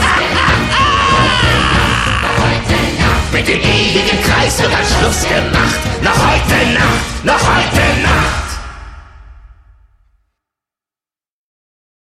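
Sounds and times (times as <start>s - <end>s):
person singing in German: 0.0s - 8.8s.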